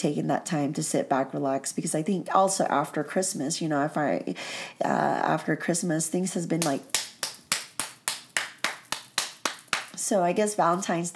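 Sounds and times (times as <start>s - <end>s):
speech: 0.0s - 7.1s, 10.1s - 11.1s
hands clapping: 6.6s - 10.0s.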